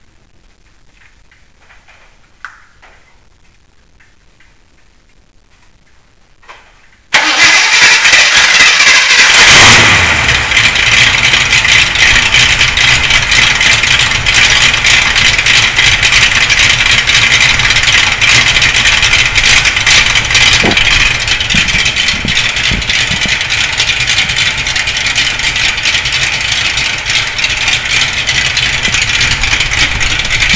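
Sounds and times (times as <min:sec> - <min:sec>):
jeep engine starting: 0:07.1 - 0:30.5.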